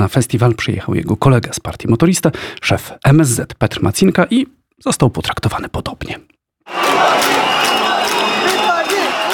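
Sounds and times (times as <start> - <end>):
speech: 0.0 - 8.3
large crowd jeering and shouting: 6.7 - 9.3.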